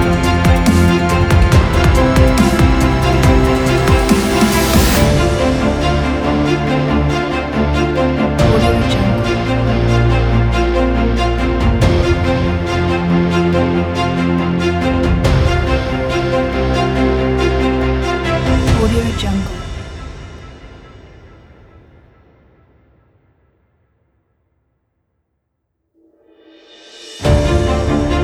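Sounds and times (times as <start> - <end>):
inspirational cinematic dubstep music: 0.0 - 20.8, 26.6 - 28.2.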